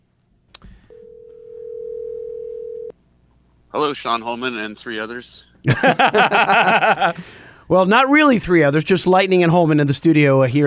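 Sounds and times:
telephone dial tone while placing a call: 0.9s - 2.9s
speech: 3.7s - 10.6s
laughter: 5.7s - 7.3s.

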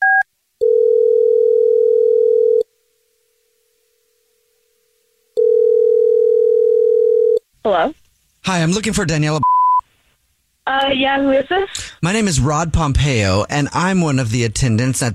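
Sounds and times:
telephone dial tone while placing a call: 0.1s - 2.7s, 5.4s - 7.4s
speech: 7.7s - 9.5s, 10.7s - 15.1s.

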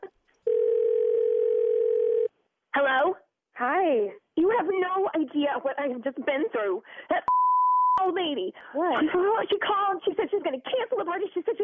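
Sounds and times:
telephone line tone while calling someone back: 0.5s - 2.3s
speech: 3.9s - 7.4s, 8.0s - 11.6s.

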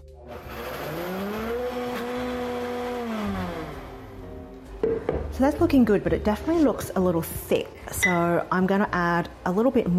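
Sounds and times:
blender blitzing pasta sauce: 0.3s - 4.3s
speech: 4.9s - 9.9s.

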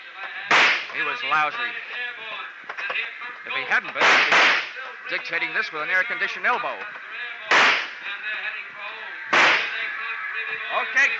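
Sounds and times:
gunshots during a rooftop shootout: 0.5s - 1.0s, 4.0s - 4.8s, 7.5s - 8.0s, 9.3s - 9.9s
speech: 1.0s - 2.1s, 2.9s - 7.8s, 10.7s - 11.1s.

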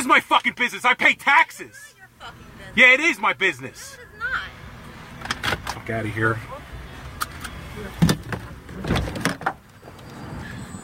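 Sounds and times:
speech: 0.0s - 4.5s, 5.8s - 6.7s
car door thuds and clicks as a man gets out of his vehicle: 7.2s - 9.7s.

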